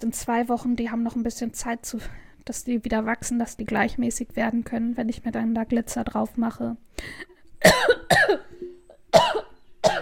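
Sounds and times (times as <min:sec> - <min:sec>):
speech: 0:00.0 - 0:08.4
harsh coughing from someone who has choked out of excitement: 0:07.6 - 0:10.0.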